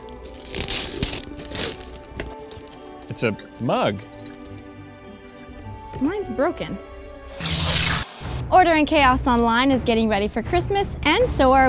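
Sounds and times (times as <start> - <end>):
gift wrapping paper being torn open: 0.0 - 2.4, 7.4 - 8.0
speech: 3.1 - 4.2, 6.0 - 6.9, 8.5 - 11.6.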